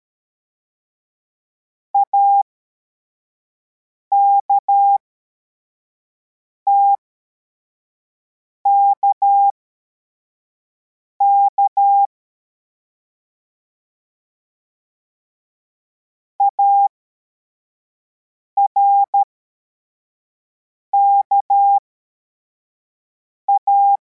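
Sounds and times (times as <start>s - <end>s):
CW morse code beeps: 2.0s - 2.4s, 4.1s - 5.0s, 8.7s - 9.5s, 11.2s - 12.1s, 16.4s - 16.9s, 18.7s - 19.2s, 21.0s - 21.8s, 23.5s - 24.0s.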